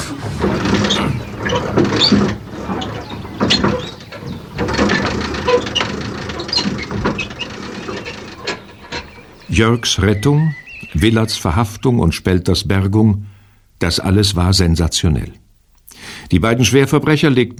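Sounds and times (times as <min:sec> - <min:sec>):
winch ratchet being cranked: 0:00.0 - 0:09.5
speech: 0:09.6 - 0:15.4, 0:16.3 - 0:17.5.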